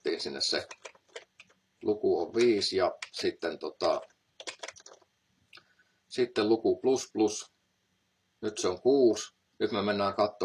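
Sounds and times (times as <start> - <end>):
speech: 0.2 - 0.9, 1.8 - 4.1, 6.1 - 7.5, 8.4 - 10.4
computer keyboard clicks from pressing the F11 key: 0.6 - 1.6, 4.4 - 5.0.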